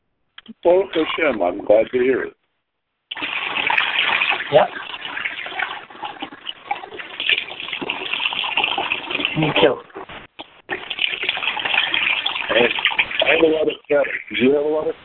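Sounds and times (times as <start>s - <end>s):
speech: 0.5s - 2.4s, 4.5s - 4.8s, 9.4s - 9.9s, 13.4s - 15.0s
tap water running while washing face: 3.1s - 14.4s.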